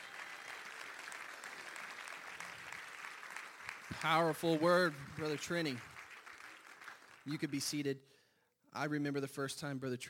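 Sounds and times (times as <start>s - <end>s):
audience clapping hands in praise: 0.0s - 7.9s
speech: 4.0s - 5.9s, 7.2s - 10.0s.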